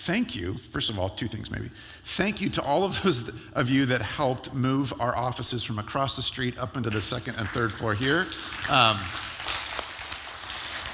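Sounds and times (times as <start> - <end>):
speech: 0.0 - 9.6
audience clapping: 7.3 - 10.9.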